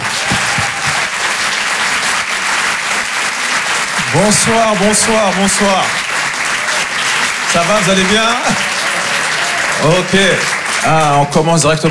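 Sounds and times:
audience applause for a comedian: 0.0s - 11.8s
laughter: 0.0s - 11.8s
speech: 4.1s - 6.0s, 7.5s - 8.8s, 9.8s - 11.8s.

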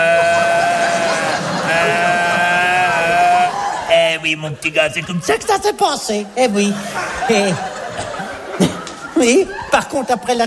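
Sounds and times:
person's voice imitating a bellowing stag: 0.0s - 3.6s
laughter: 0.0s - 5.7s, 6.4s - 10.4s
speech: 4.2s - 7.7s, 9.2s - 10.4s.

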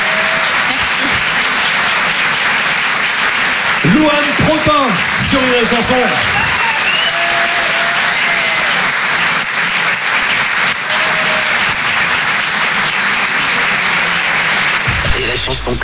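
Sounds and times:
audience applause: 0.0s - 15.8s
speech: 4.0s - 6.5s, 15.5s - 15.8s
whistles: 6.2s - 8.9s.

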